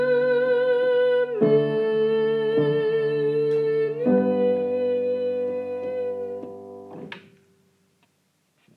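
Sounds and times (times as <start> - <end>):
tenor singing a Christmas carol: 0.0 - 6.6.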